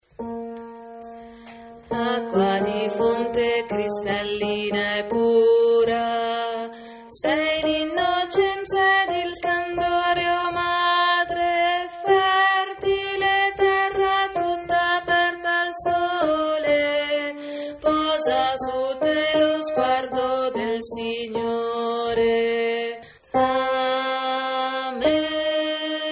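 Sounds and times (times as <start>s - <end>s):
contralto voices singing: 1.9s - 26.0s.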